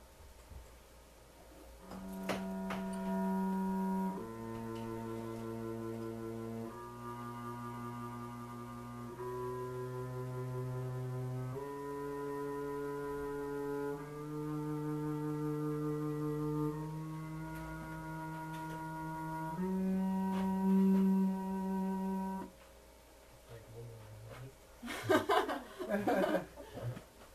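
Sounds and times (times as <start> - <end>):
series of buzzy pitched tones spanning an octave: 1.8 - 22.5
laughter: 24.8 - 27.0.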